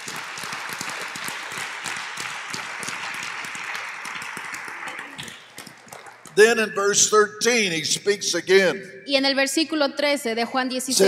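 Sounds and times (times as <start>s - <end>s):
audience applause: 0.0s - 6.7s
speech: 6.4s - 11.0s.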